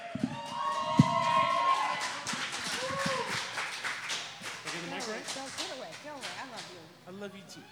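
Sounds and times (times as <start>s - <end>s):
whoops and cheering voices: 0.0s - 3.5s
audience applause: 0.0s - 7.2s.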